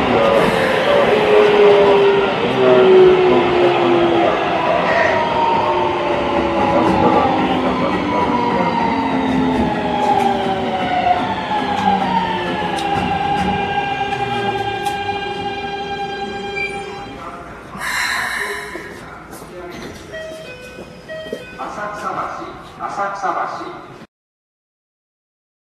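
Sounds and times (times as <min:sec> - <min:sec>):
Keikyu 1000 train Siemens VVVF inverter: 0:00.0 - 0:19.4.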